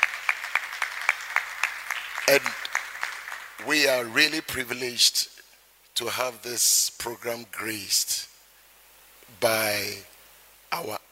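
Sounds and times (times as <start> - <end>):
audience round of applause: 0.0 - 4.0
speech: 2.3 - 2.6, 3.6 - 5.3, 6.0 - 8.3, 9.4 - 10.1, 10.7 - 11.1.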